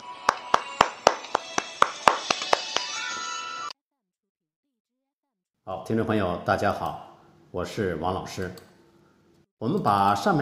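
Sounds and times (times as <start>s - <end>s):
audience applause: 0.0s - 3.3s
speech: 5.7s - 8.7s, 9.6s - 10.4s.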